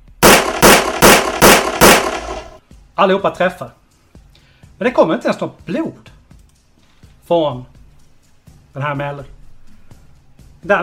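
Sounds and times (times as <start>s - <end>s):
rapid gunshots in a video game: 0.2s - 2.6s
speech: 3.0s - 3.8s, 4.8s - 6.2s, 7.3s - 7.8s, 8.7s - 9.4s, 10.6s - 10.8s.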